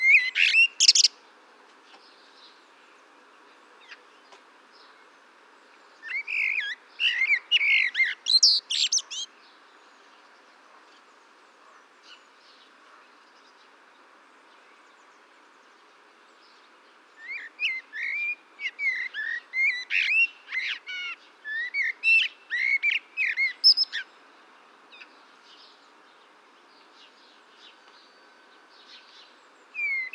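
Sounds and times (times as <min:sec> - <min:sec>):
common blackbird whistled song: 0:00.0 - 0:01.2, 0:06.0 - 0:09.3, 0:17.2 - 0:24.1, 0:28.8 - 0:30.1
faint birds twittering: 0:00.0 - 0:30.1.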